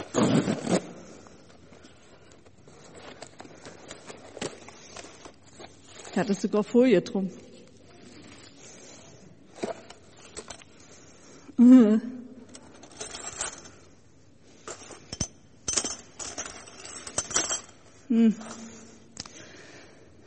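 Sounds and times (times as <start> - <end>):
speech: 0.2 - 0.8, 6.2 - 7.4
pieces of a broken ceramic cup clinking and scraping: 12.6 - 13.8, 14.6 - 18.8.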